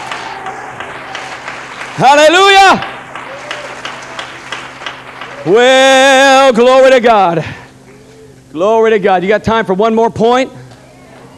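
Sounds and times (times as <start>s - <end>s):
audience clapping hands: 0.0s - 6.6s
speech: 2.0s - 2.9s, 5.4s - 7.6s, 8.5s - 10.6s.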